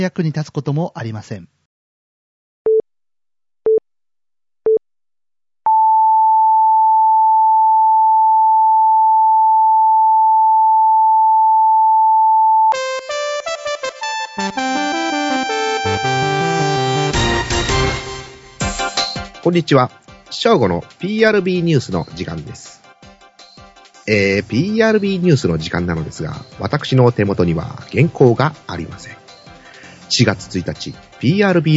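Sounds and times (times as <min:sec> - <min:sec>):
speech: 0:00.0 - 0:01.6, 0:19.5 - 0:22.8, 0:24.0 - 0:29.2, 0:30.1 - 0:31.7
alarm broadcast sine tone pips and beep: 0:05.7 - 0:12.8
loud dense buzzy electronic sound: 0:12.7 - 0:19.1.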